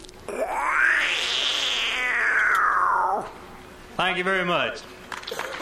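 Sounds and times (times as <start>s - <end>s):
person imitating a wildcat scream: 0.3s - 3.4s
speech: 4.0s - 5.5s.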